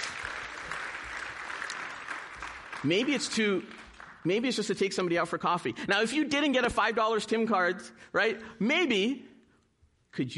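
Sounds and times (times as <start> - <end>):
audience applause: 0.0 - 4.4
speech: 2.8 - 9.3, 10.1 - 10.3.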